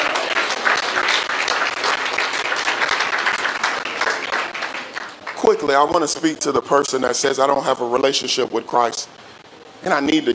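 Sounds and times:
audience clapping hands: 0:00.0 - 0:05.8
speech: 0:05.5 - 0:09.2, 0:09.8 - 0:10.3.

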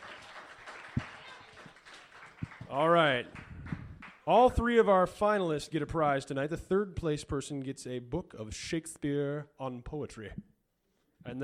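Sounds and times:
audience applause: 0:00.0 - 0:04.2
speech: 0:02.7 - 0:03.4, 0:04.3 - 0:10.5.

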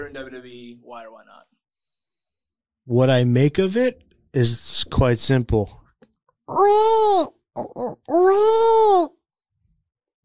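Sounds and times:
speech: 0:00.0 - 0:01.6, 0:02.9 - 0:05.8, 0:06.5 - 0:09.2
baby crying sound effect: 0:06.5 - 0:09.2.

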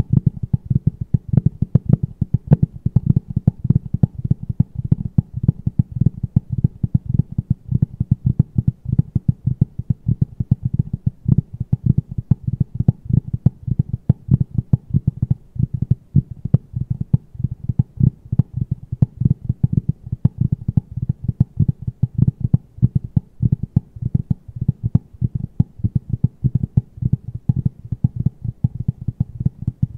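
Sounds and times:
fast aggressive dull tapping: 0:00.0 - 0:29.9.

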